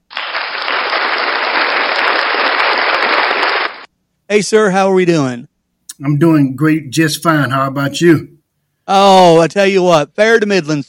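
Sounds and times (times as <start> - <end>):
crowd applauding: 0.0 - 3.9
speech: 4.3 - 10.8.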